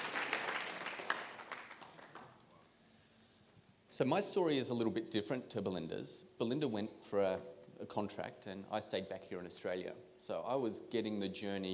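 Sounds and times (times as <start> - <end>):
audience applause: 0.0 - 2.3
speech: 4.0 - 11.7.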